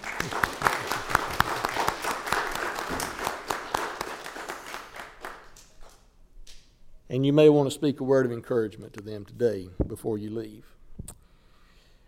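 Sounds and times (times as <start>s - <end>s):
audience applauding graduates: 0.0s - 5.6s
speech: 7.2s - 10.8s.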